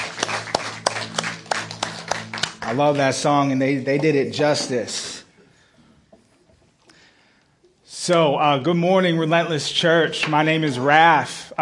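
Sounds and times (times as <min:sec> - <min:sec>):
church audience clapping in a steady rhythm: 0:00.0 - 0:03.9
speech: 0:02.7 - 0:05.1, 0:08.0 - 0:11.6.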